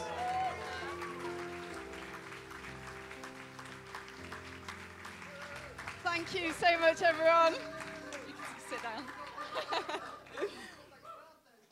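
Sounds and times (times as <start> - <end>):
sustained musical backing: 0.0 - 10.8
audience clapping welcoming a comedian onto a stage: 0.0 - 11.0
speech: 6.2 - 7.8, 8.7 - 10.2
laughter: 8.5 - 10.9.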